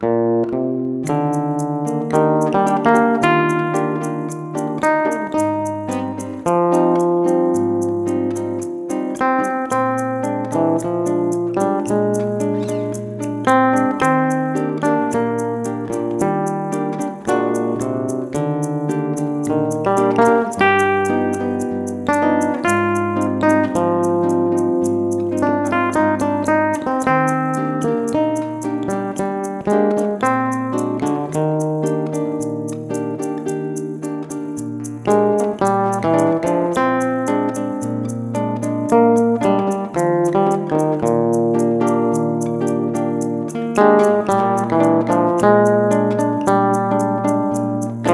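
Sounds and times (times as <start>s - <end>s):
Spanish guitar playing a Spanish waltz: 0.0s - 48.1s.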